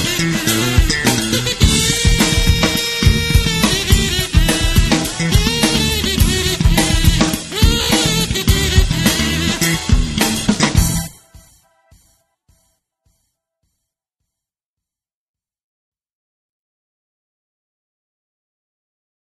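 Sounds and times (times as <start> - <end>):
kazoo: 0.0 - 11.6
saxophone: 0.0 - 12.0.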